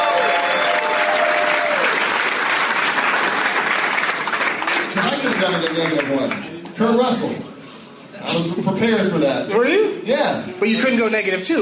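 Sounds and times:
live comedy-show audience applause: 0.0s - 6.5s
speech: 5.6s - 7.5s, 8.4s - 11.6s.

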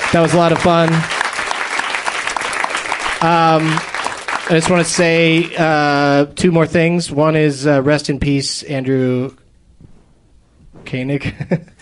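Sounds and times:
audience round of applause: 0.0s - 5.6s
speech: 0.1s - 1.1s, 3.2s - 3.9s, 4.5s - 9.4s, 10.9s - 11.7s.

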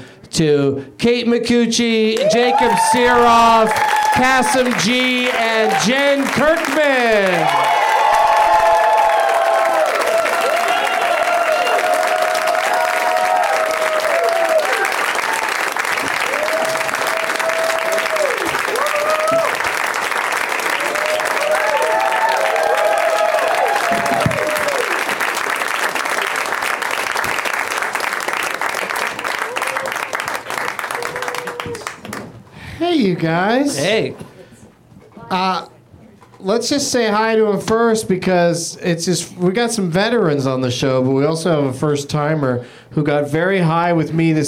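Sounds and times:
speech: 0.4s - 7.7s, 33.2s - 34.2s, 35.3s - 35.7s, 36.5s - 44.4s
audience applause and cheering welcoming guests onto a show: 2.2s - 32.3s.

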